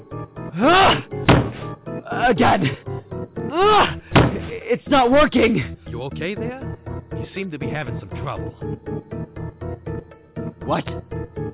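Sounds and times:
speech: 0.6 - 1.1, 2.2 - 2.9, 3.5 - 4.1, 4.7 - 9.3, 10.7 - 11.5
chair bashing against window glass: 1.2 - 1.6, 4.1 - 4.5.

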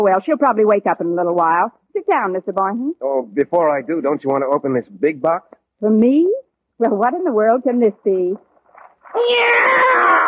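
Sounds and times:
speech: 0.0 - 8.5, 9.1 - 10.2
cat meowing: 9.2 - 10.2.

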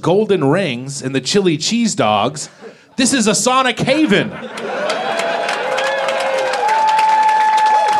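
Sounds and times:
speech: 0.0 - 5.2
laughter: 2.4 - 3.2, 3.8 - 6.4
audience clapping: 4.4 - 7.9.

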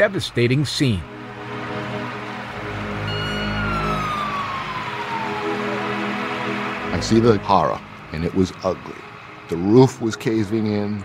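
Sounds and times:
speech: 0.0 - 1.1, 7.0 - 11.0
fire truck sirens: 1.4 - 9.4.

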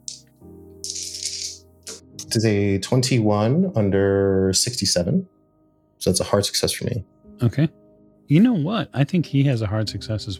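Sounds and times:
dice being rolled: 0.8 - 1.6
speech: 2.2 - 5.4, 6.0 - 10.3.

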